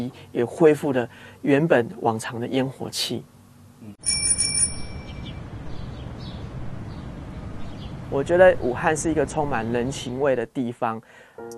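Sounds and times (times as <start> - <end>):
speech: 0.0 - 4.0, 8.1 - 11.5
bell ringing: 4.0 - 5.4.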